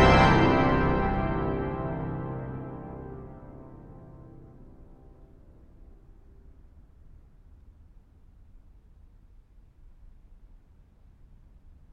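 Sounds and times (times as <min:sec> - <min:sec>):
pipe organ improvisation: 0:00.0 - 0:04.6.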